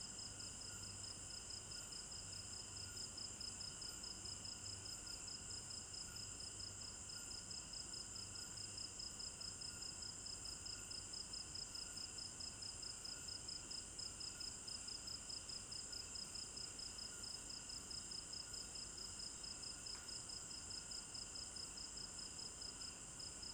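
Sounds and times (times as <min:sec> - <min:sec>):
crickets chirping at night in a village garden in Africa: 0:00.0 - 0:23.5.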